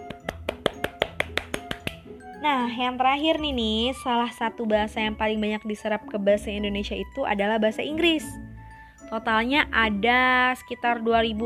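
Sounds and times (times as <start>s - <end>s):
applause: 0.3s - 1.9s
speech: 2.4s - 8.4s, 9.1s - 11.4s.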